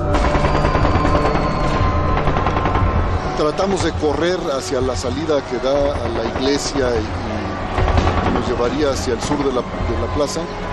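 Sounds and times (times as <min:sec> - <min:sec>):
gunshots: 0:00.0 - 0:10.2
speech: 0:03.4 - 0:07.4, 0:08.3 - 0:10.7.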